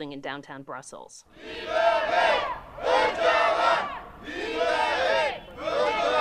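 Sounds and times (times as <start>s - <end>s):
speech: 0.0s - 2.6s
Kurds protesting and chanting outside the summit venue in Brussels: 1.3s - 6.1s.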